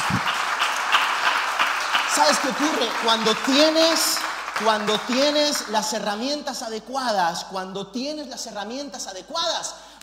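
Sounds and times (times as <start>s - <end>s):
audience applauding: 0.0s - 6.2s
speech: 2.2s - 9.9s.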